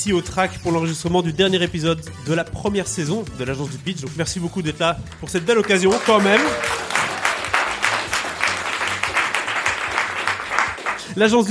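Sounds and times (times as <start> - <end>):
speech: 0.0 - 6.8, 11.2 - 11.5
audience applause: 5.6 - 11.1.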